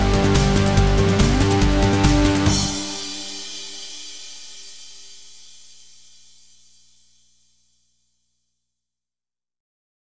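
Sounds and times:
boss level music: 0.0s - 4.1s.

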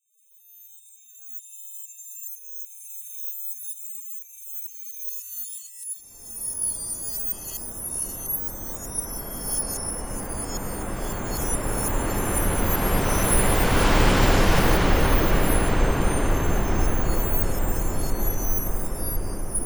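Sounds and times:
rain: 8.0s - 19.5s.

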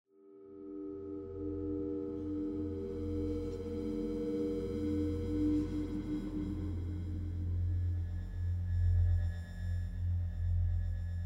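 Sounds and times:
dark scary exploration mood music: 0.2s - 11.1s.

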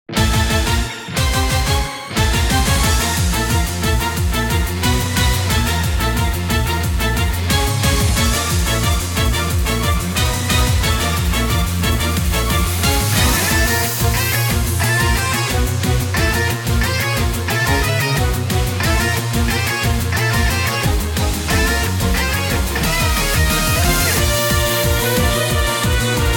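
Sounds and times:
battle break beat: 0.1s - 26.3s.

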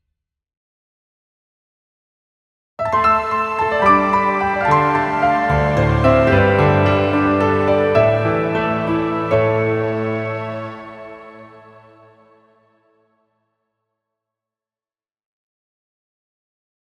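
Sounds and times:
jingle medley: 2.8s - 12.3s.

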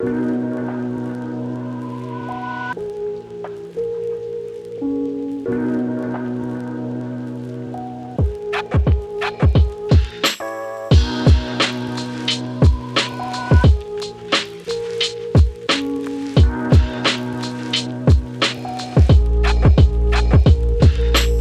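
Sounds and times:
lo-fi hip hop music: 0.0s - 21.3s.

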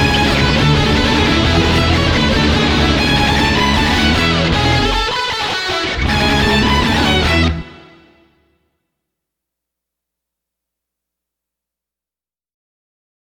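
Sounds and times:
backing track without drums: 0.0s - 8.5s.

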